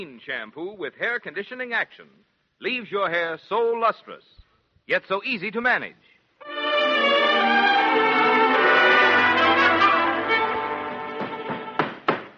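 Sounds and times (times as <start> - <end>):
speech: 0.0 - 8.1
sustained musical chord: 6.4 - 11.8.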